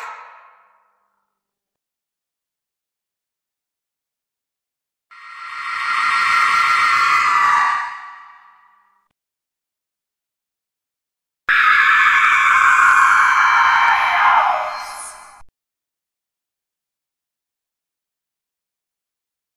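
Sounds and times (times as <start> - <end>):
very scary horror sound effects: 5.1 - 8.9, 11.5 - 15.5.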